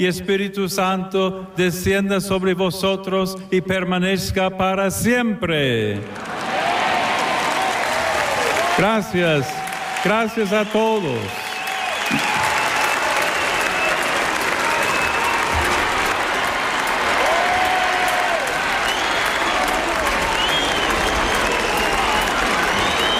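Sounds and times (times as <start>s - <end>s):
speech: 0.0s - 6.4s, 8.8s - 11.4s
crowd cheering: 6.0s - 23.1s
crowd whistling: 10.4s - 15.6s, 18.8s - 23.1s.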